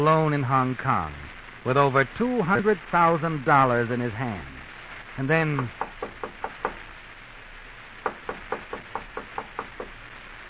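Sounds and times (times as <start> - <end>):
speech: 0.0 - 4.6, 5.2 - 5.8
knocking on a door: 5.6 - 6.8, 8.0 - 10.0.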